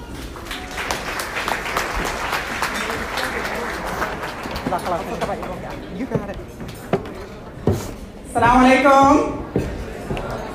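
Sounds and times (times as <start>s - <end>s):
audience applause welcoming a speaker to the stage: 0.0s - 6.2s
speech: 4.7s - 6.6s, 8.4s - 9.4s.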